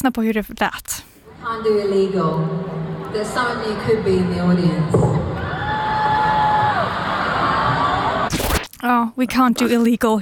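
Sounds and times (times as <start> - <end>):
speech: 0.0 - 5.3, 8.8 - 10.1
crowd booing and jeering: 2.8 - 8.3.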